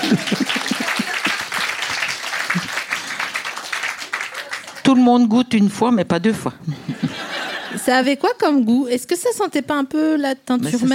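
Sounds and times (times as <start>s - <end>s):
laughter: 0.0s - 1.8s, 2.4s - 3.3s, 6.6s - 8.2s
audience applause: 0.0s - 5.1s
speech: 0.1s - 0.4s, 4.9s - 7.0s, 7.9s - 10.9s.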